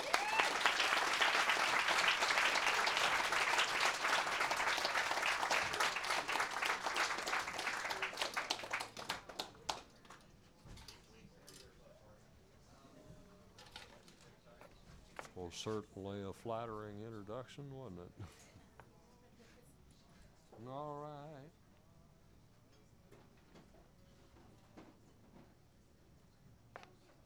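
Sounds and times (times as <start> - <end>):
audience clapping for a performer on stage: 0.0 - 10.0
speech: 15.6 - 18.4.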